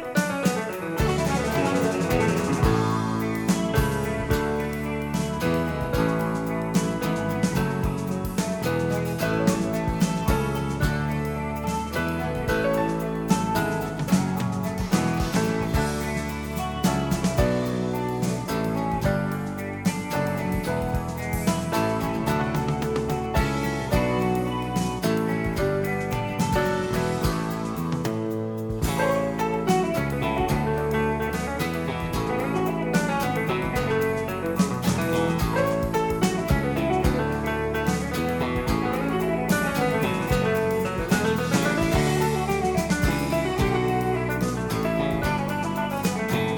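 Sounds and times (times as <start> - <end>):
waltz: 0.2 - 46.5.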